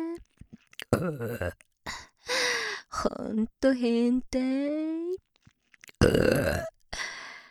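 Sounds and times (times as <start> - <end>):
woman burping loudly: 0.8 - 1.6, 6.0 - 6.8
speech: 0.9 - 1.7, 3.0 - 5.0, 6.0 - 6.7.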